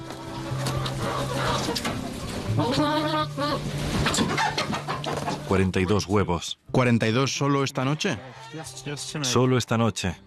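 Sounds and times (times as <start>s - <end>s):
hens clucking: 0.0s - 6.2s, 7.4s - 9.4s
speech: 1.6s - 10.2s.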